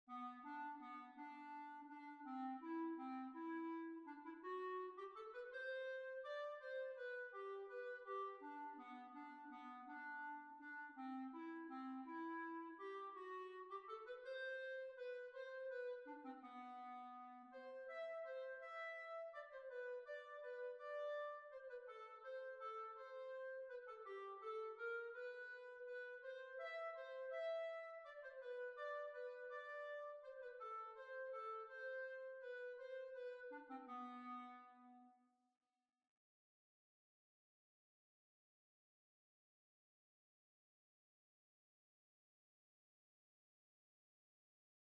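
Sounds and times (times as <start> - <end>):
waltz music: 0.1 - 34.5.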